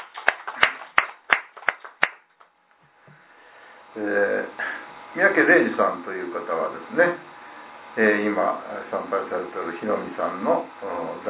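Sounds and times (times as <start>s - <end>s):
applause at a Konko faith church service celebrating a 69th birthday: 0.0s - 2.6s
speech: 4.0s - 4.6s, 5.2s - 7.3s, 8.0s - 11.2s.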